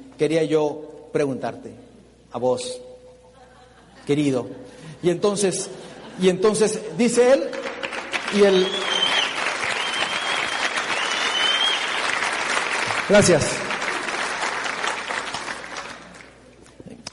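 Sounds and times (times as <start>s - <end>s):
speech: 0.2s - 2.9s, 4.0s - 7.7s, 8.3s - 8.9s, 13.1s - 13.6s
laughter: 3.3s - 5.0s, 5.8s - 7.2s
sustained audience applause: 7.5s - 16.4s.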